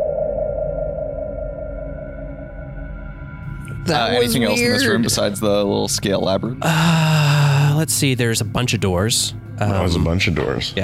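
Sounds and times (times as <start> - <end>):
sustained tinnitus-like ringing tone: 0.0 - 4.6
speech: 3.9 - 10.8.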